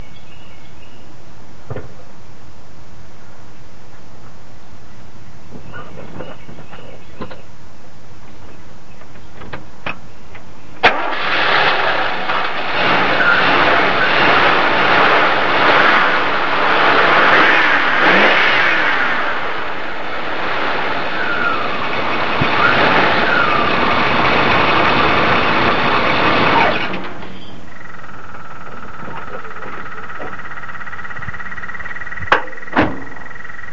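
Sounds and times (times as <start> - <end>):
car: 9.1 - 33.7.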